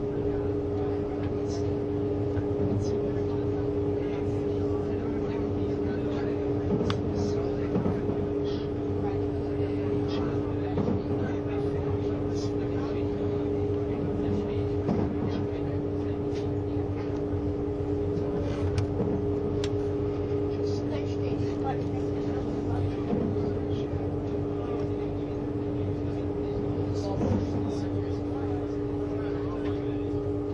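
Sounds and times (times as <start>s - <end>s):
Swiss tilting ICN train RABDe500 running on the Gotthard line: 0.0s - 30.5s
faint voices: 0.0s - 30.5s
clicks and knocks from the track: 6.5s - 8.4s, 10.7s - 12.0s, 13.6s - 20.6s, 21.7s - 26.4s, 27.0s - 28.0s.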